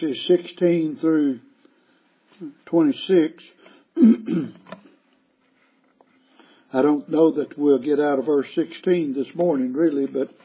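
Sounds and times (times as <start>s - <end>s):
speech: 0.0s - 1.5s, 2.4s - 4.8s, 6.7s - 10.4s
man clearing his throat: 4.0s - 4.7s.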